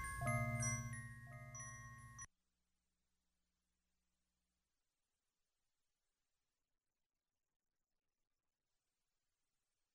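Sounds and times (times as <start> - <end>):
wind chimes: 0.0 - 2.3.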